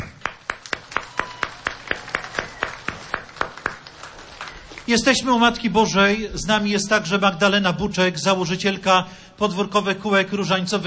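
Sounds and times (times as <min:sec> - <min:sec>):
audience clapping in unison: 0:00.0 - 0:05.3
speech: 0:04.9 - 0:10.8.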